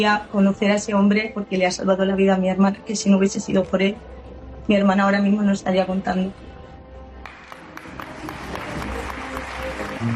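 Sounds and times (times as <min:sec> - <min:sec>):
speech: 0:00.0 - 0:06.5
applause: 0:07.2 - 0:10.1.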